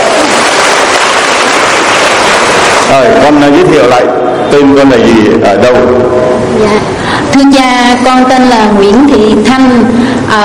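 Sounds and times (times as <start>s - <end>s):
audience applause: 0.0s - 3.1s
speech: 2.9s - 10.4s.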